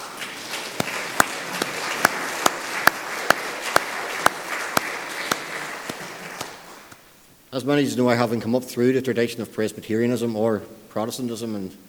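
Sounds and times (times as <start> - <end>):
crowd clapping: 0.0 - 7.0
speech: 7.6 - 11.8.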